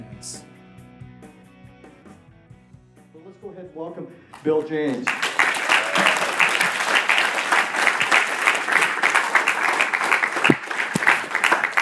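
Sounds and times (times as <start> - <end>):
speech: 0.2 - 0.5, 3.4 - 5.5
audience clapping: 4.3 - 11.8.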